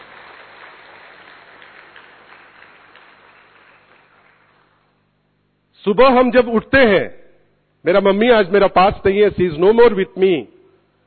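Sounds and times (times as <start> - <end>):
audience applause: 0.0 - 4.9
speech: 5.8 - 7.2, 7.8 - 10.5.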